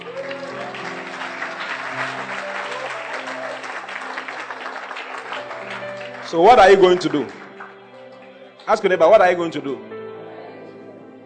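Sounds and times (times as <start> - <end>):
audience applause: 0.0 - 8.9
speech: 6.3 - 7.4, 8.7 - 9.9.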